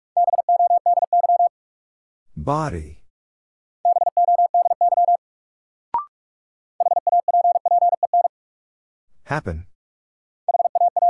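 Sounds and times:
Morse code tones at 45 wpm: 0.2s - 1.5s, 3.9s - 5.2s, 6.8s - 8.3s, 10.5s - 11.0s
speech: 2.4s - 3.0s, 9.3s - 9.7s.

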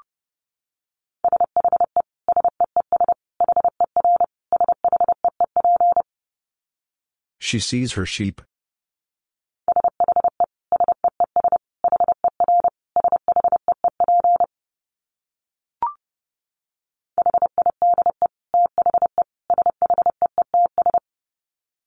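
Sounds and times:
Morse code beeps at 30 wpm: 1.2s - 6.0s, 9.7s - 14.5s, 17.2s - 21.0s
speech: 7.5s - 8.5s.

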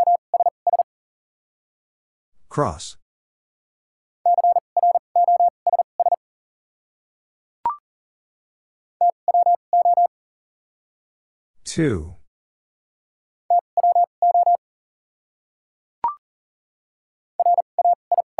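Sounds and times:
Morse code beeps spelling a word: 0.0s - 0.8s, 4.3s - 6.2s, 9.0s - 10.1s, 13.5s - 14.6s, 17.4s - 18.3s
speech: 2.6s - 3.0s, 11.7s - 12.2s.

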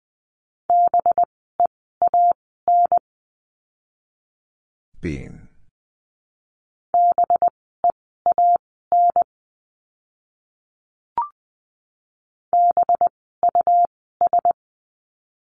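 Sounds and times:
Morse code tone beeps at 20 words per minute: 0.7s - 1.3s, 2.0s - 3.0s, 7.0s - 7.5s, 8.3s - 9.3s, 12.6s - 14.6s
speech: 5.0s - 5.5s.

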